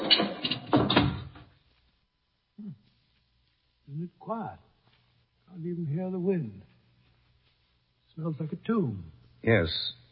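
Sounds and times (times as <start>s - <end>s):
heavy door shutting with a dull thud: 0.0s - 1.5s
speech: 4.3s - 4.7s, 5.5s - 6.7s, 8.2s - 10.0s.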